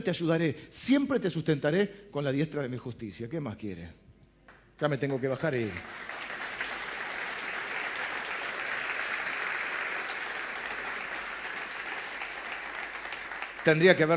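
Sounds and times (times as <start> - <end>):
speech: 0.0 - 4.0, 4.8 - 6.1, 13.6 - 14.1
audience applauding: 5.2 - 14.1.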